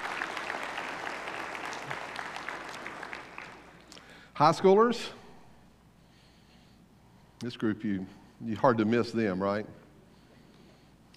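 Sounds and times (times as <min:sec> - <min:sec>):
audience applause: 0:00.0 - 0:03.9
speech: 0:04.4 - 0:05.2, 0:07.4 - 0:09.8.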